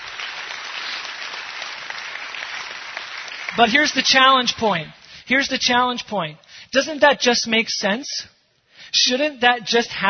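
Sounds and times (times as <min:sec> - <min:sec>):
crowd applauding: 0:00.0 - 0:04.1
speech: 0:03.5 - 0:10.0.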